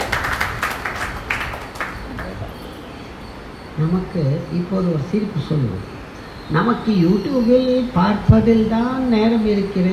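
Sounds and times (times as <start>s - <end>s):
audience clapping hands: 0.0s - 2.4s
speech: 3.8s - 9.9s.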